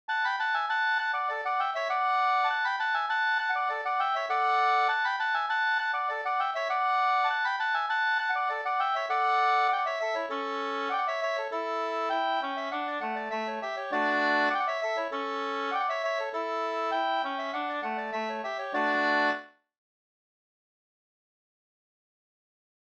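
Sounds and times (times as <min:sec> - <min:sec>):
halling folk dance music: 0:00.3 - 0:19.4.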